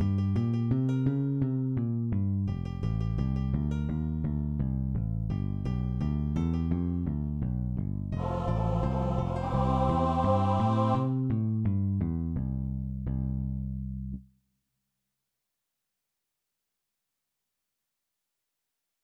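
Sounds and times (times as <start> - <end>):
bass: 0.0 - 14.4.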